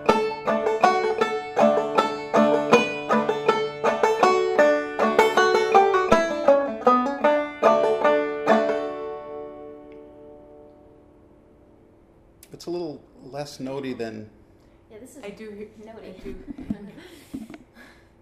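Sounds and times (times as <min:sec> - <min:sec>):
banjo: 0:00.0 - 0:10.7.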